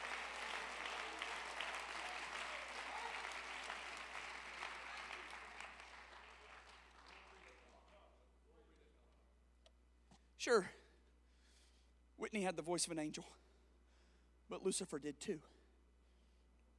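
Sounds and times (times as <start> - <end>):
audience clapping hands: 0.0 - 8.1
speech: 10.4 - 10.8, 12.3 - 13.5, 14.5 - 15.6.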